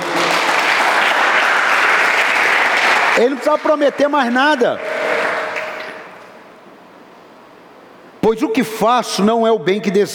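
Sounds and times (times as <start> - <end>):
audience applause: 0.0 - 6.3
speech: 3.2 - 4.9, 8.3 - 10.1.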